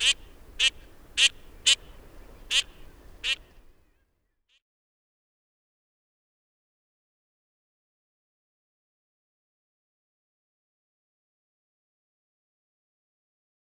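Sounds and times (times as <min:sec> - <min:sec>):
Eurasian teal calling: 0:00.0 - 0:03.8.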